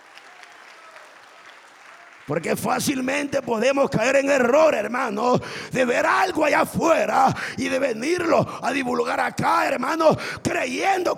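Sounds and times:
audience applauding: 0.0s - 4.6s
speech: 2.3s - 11.1s.

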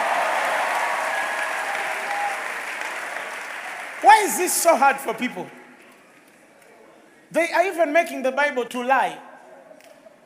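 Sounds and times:
audience applauding with hand claps of praise: 0.0s - 5.6s
speech: 4.0s - 5.6s, 7.4s - 9.3s.

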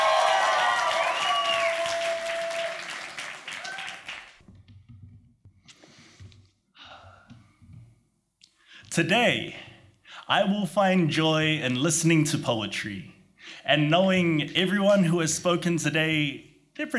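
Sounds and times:
audience applause welcoming a poet at a poetry slam final round: 0.0s - 4.4s
faint breaths: 5.6s - 7.9s, 8.6s - 10.3s, 13.3s - 13.8s
speech: 9.0s - 9.7s, 10.3s - 16.9s.

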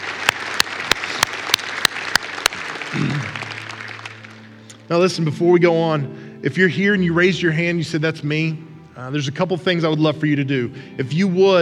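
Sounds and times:
audience applause: 0.0s - 4.6s
speech: 4.9s - 11.6s.

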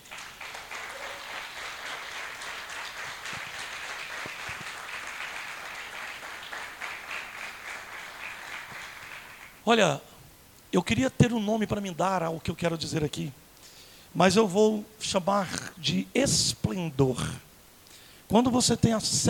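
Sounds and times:
crowd applause: 0.0s - 9.6s
speech: 9.7s - 10.1s, 10.7s - 13.4s, 14.1s - 17.4s, 18.3s - 19.2s.

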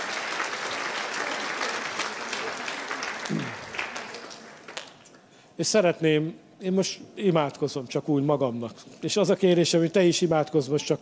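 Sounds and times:
applause for worship band: 0.0s - 5.2s
speech: 5.6s - 11.0s.

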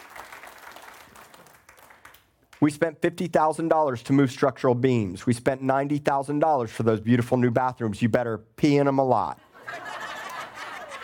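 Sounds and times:
audience hand clapping: 0.0s - 2.7s, 10.1s - 11.0s
speech: 2.6s - 9.4s
laughter: 9.4s - 11.0s.

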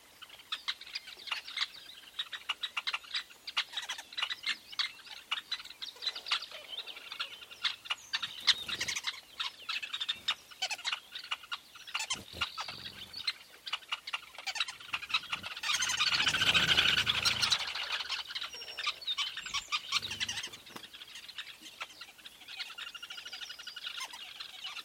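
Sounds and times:
weavers chattering: 0.1s - 24.8s.

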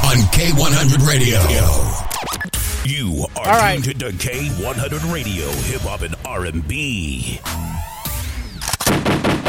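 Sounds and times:
speech: 0.2s - 2.2s, 2.9s - 7.9s
gunshot sound effects on a hip-hop and R&B radio show: 8.8s - 9.4s.

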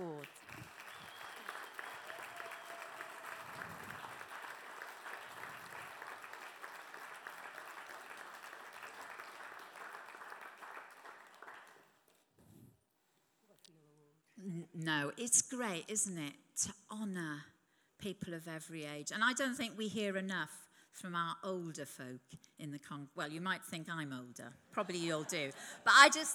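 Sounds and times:
audience applause: 0.0s - 11.9s
speech: 14.8s - 26.3s.

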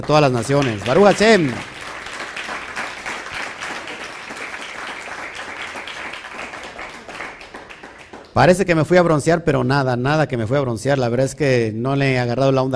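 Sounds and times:
speech: 0.0s - 1.7s, 8.4s - 12.7s
applause: 0.0s - 8.6s.

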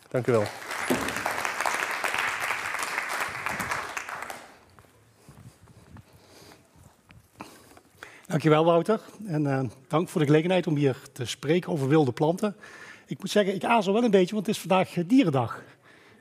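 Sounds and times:
speech: 0.1s - 1.0s, 8.4s - 15.8s
audience applause: 0.2s - 4.6s.

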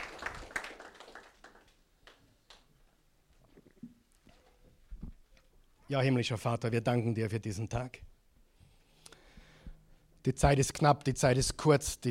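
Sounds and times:
scattered hand claps from a group in a quiet room: 0.0s - 2.7s
speech: 5.9s - 8.1s, 10.2s - 12.1s.

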